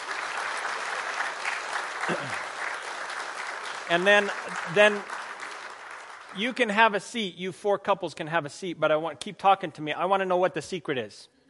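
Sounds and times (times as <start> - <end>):
audience applause: 0.0 - 6.8
speech: 2.1 - 2.4, 3.9 - 5.1, 6.3 - 11.3.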